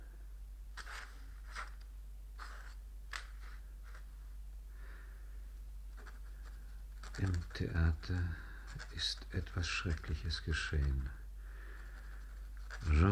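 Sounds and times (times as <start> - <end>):
pen scratching on paper while drawing a lily: 0.8 - 1.8, 2.4 - 4.0, 5.9 - 11.1, 11.8 - 13.1
speech: 7.2 - 11.2, 12.8 - 13.1.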